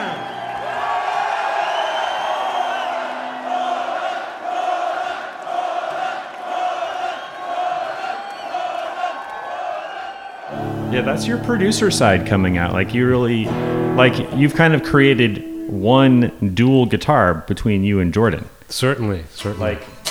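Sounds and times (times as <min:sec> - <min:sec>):
concert crowd cheering: 0:00.0 - 0:16.2
concert crowd chanting band members' names: 0:02.5 - 0:16.0
speech: 0:11.0 - 0:19.9.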